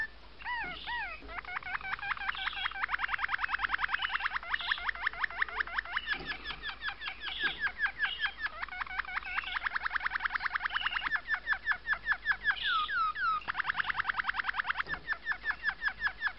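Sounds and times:
domestic canary song: 0.0s - 16.3s.

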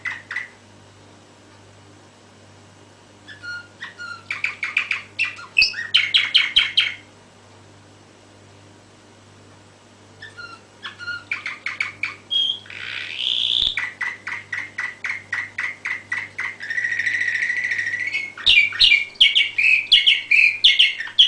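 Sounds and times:
canary song: 0.0s - 0.7s, 3.2s - 7.1s, 10.2s - 21.2s.

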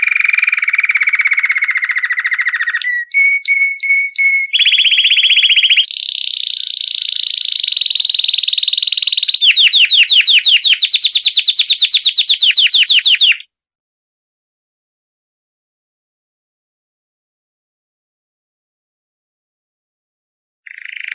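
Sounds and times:
canary song in rapid rolling tours: 0.0s - 13.5s, 20.7s - 21.1s.

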